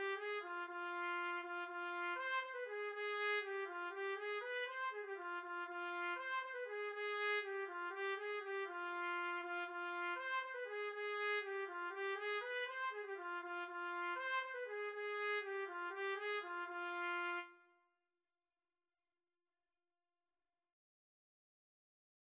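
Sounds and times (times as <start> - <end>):
trumpet duet: 0.0 - 17.6.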